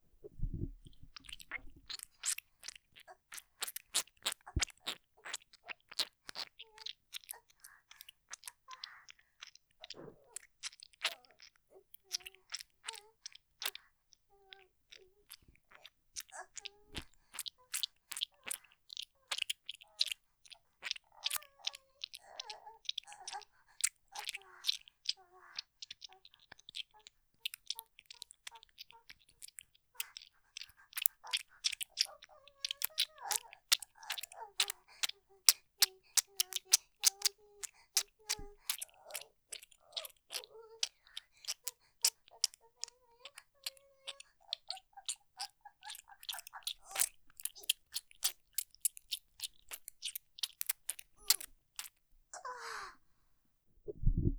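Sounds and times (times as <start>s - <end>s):
wet squelching sound effect: 0.2s - 13.9s, 14.6s - 52.0s, 53.9s - 54.3s.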